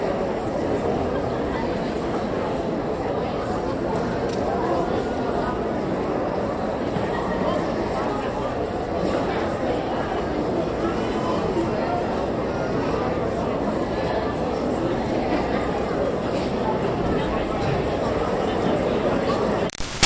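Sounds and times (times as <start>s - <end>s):
high school graduation crowd idle chatter in an auditorium: 0.0s - 20.0s.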